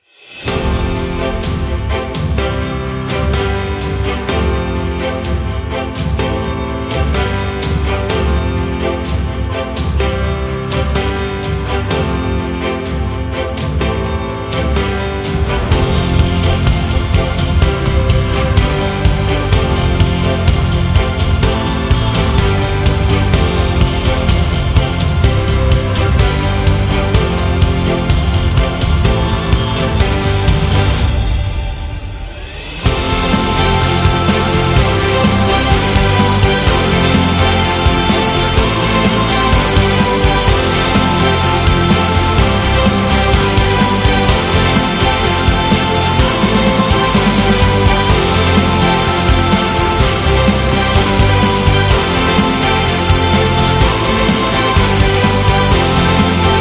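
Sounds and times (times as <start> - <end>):
motivational music: 0.0 - 56.5.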